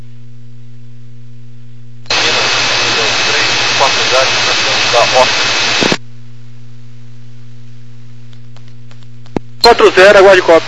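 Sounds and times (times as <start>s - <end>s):
jet aircraft engine roaring during takeoff over a radio channel: 2.1s - 6.0s
speech: 9.9s - 10.6s.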